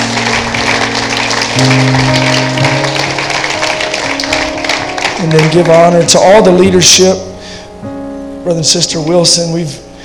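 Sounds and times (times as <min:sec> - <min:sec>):
audience hand clapping: 0:00.0 - 0:06.2
low sustained organ-like chords: 0:00.0 - 0:10.0
speech: 0:01.6 - 0:02.7, 0:05.2 - 0:07.3, 0:08.4 - 0:09.9.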